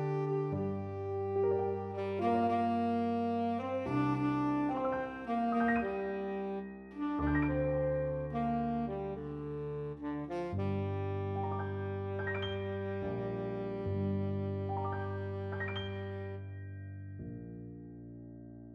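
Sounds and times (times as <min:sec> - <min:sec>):
tenor saxophone melody: 0:00.0 - 0:17.3.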